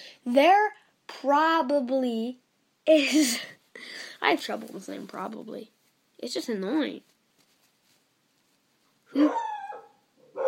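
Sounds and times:
speech: 0.2 - 7.1, 9.1 - 9.5
pet dog barking and whining: 9.1 - 10.4.

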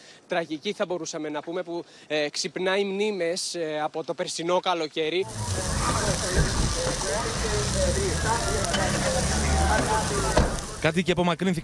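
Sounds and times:
speech: 0.3 - 11.6
wildfire burning with a crackling roar: 5.2 - 11.0.

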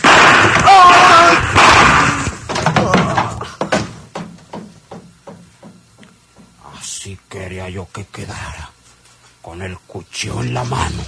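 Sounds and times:
pistol shots in a radio drama: 0.0 - 0.6
person shouting frantically: 0.6 - 2.1
speech: 7.7 - 8.8, 9.4 - 11.0.

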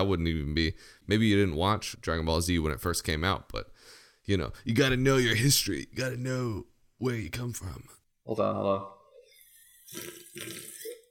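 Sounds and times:
speech: 0.0 - 9.0, 9.9 - 10.7
loud sip of a drink: 9.6 - 11.0.

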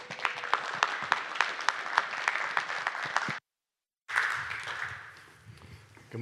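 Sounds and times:
audience applause: 0.0 - 3.4, 4.1 - 5.2.

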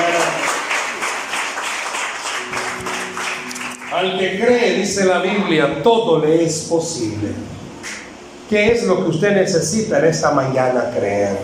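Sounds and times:
audience applause: 0.0 - 4.4
sustained low musical tone: 2.4 - 8.5
speech: 4.0 - 7.6, 8.5 - 11.4.

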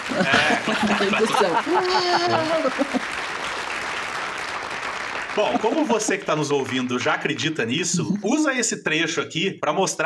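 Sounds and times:
laughter: 0.0 - 3.7, 5.3 - 6.8
applause sound effect: 0.0 - 7.1
speech: 0.1 - 3.2, 5.4 - 10.0.

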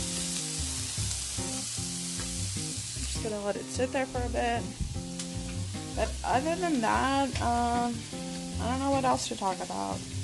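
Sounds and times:
food sizzling in a pan while being stirred: 0.0 - 10.2
speech: 3.2 - 4.8, 6.0 - 10.1.

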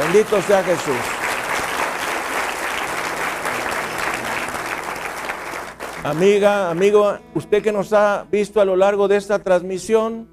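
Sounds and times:
audience applause: 0.0 - 6.9
speech: 0.1 - 1.2, 6.0 - 10.3.

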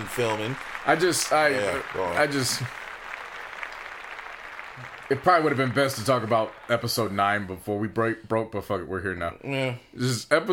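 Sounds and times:
applause: 0.0 - 7.8
speech: 0.2 - 2.8, 4.8 - 10.5.

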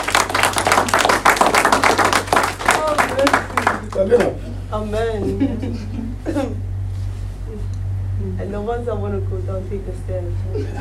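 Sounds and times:
crowd clapping hands: 0.0 - 4.4
low hum: 0.0 - 10.8
speech: 4.0 - 6.6, 8.3 - 10.8.

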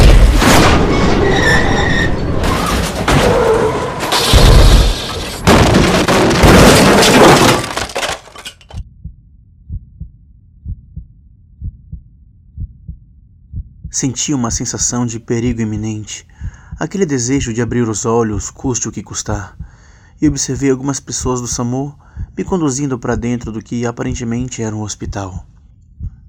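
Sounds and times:
head-on car crash: 0.0 - 8.7
speech: 14.0 - 25.5.

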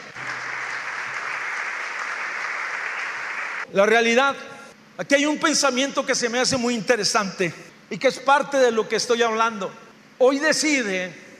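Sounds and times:
audience applause: 0.0 - 3.7
speech: 3.7 - 11.2.

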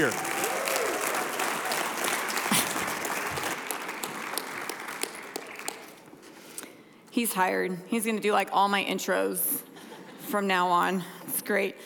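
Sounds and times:
speech: 0.0 - 0.2, 7.2 - 9.6, 10.3 - 11.8
church congregation applauding to welcome a pastor to the stage: 0.0 - 6.2.

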